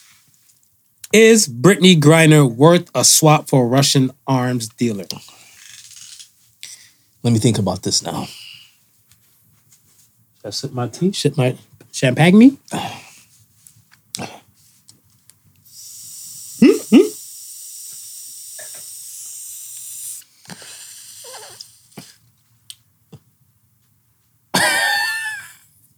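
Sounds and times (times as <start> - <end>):
speech: 1.1 - 5.4, 7.2 - 8.5, 10.4 - 13.0
long drag and exhale from vape pen: 15.7 - 19.0, 20.4 - 22.3.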